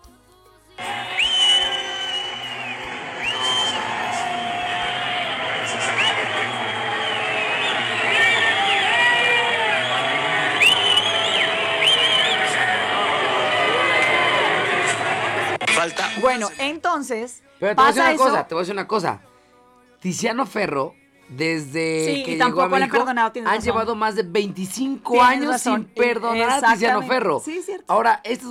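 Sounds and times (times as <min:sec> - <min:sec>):
concert crowd booing performers on stage in Houston: 0:00.8 - 0:16.6
speech: 0:16.3 - 0:19.3, 0:20.0 - 0:28.4.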